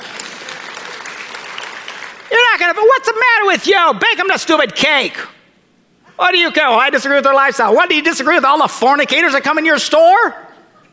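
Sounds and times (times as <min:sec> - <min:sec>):
audience applause: 0:00.0 - 0:02.7
speech: 0:02.6 - 0:05.4, 0:06.2 - 0:10.4.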